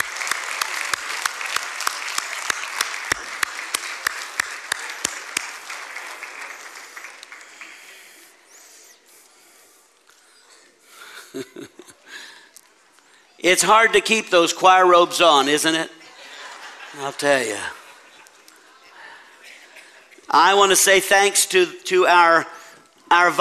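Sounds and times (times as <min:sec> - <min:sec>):
audience applause: 0:00.0 - 0:08.6
laughter: 0:10.7 - 0:12.4, 0:15.9 - 0:20.3
speech: 0:13.4 - 0:16.0, 0:17.0 - 0:17.8, 0:20.3 - 0:23.3.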